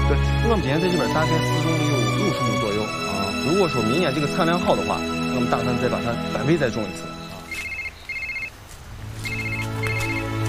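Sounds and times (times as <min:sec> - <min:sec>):
speech: 0:00.1 - 0:07.2
phone ringtone: 0:07.5 - 0:08.5, 0:09.2 - 0:10.2.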